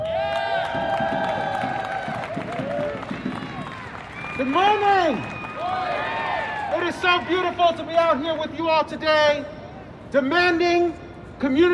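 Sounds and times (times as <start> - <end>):
crowd applause and cheering: 0.0 - 7.3
speech: 4.4 - 5.3, 6.9 - 11.7.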